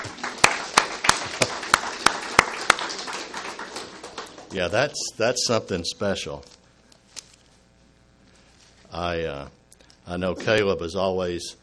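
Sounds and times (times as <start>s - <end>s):
audience applause: 0.0s - 5.0s
speech: 4.5s - 6.6s, 9.0s - 11.6s.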